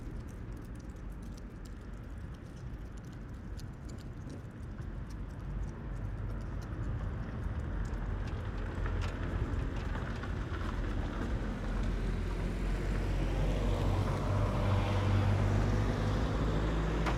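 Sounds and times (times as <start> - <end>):
wind in a town parking space: 0.0 - 17.1
gate moving in wind: 16.8 - 17.1.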